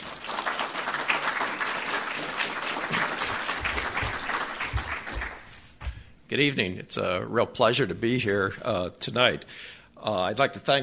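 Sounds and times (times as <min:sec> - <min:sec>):
audience applauding to welcome a history professor before an evening lecture: 0:00.0 - 0:05.7
speech: 0:06.3 - 0:10.8.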